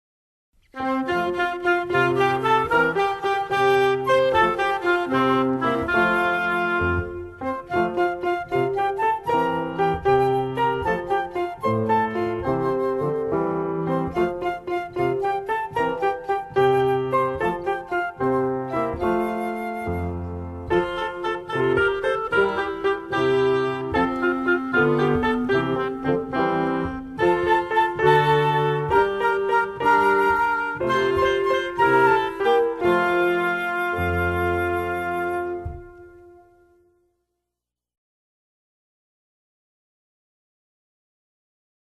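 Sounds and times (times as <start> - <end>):
music: 0.6 - 37.7.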